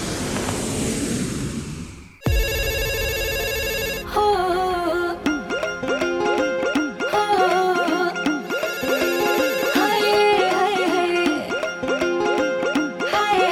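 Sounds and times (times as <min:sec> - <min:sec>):
brief wash of noise: 0:00.0 - 0:05.8
electronic phone ringtone: 0:02.3 - 0:04.4, 0:05.3 - 0:13.1.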